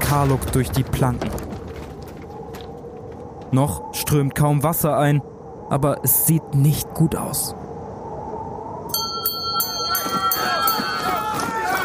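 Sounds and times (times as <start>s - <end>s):
speech: 0.1s - 1.4s, 3.5s - 7.7s
shrill alarm bell ringing on a ship: 8.9s - 11.5s.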